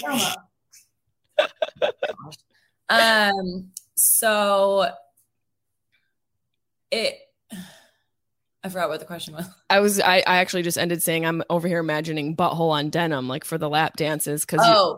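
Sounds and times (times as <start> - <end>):
person imitating sneezes: 0.0 - 0.4
speech: 0.0 - 0.5, 1.4 - 5.0, 6.9 - 7.8, 8.6 - 14.9
laughter: 1.3 - 2.4.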